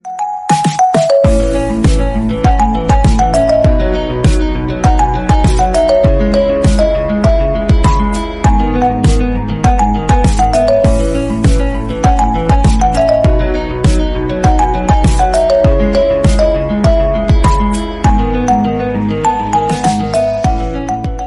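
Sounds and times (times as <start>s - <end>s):
new iPhone ringtone: 0.0s - 21.2s.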